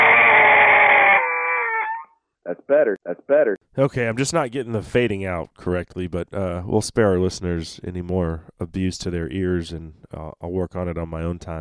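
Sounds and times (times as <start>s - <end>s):
crow call blown with a throat growl: 0.0s - 2.2s
speech: 2.7s - 11.5s.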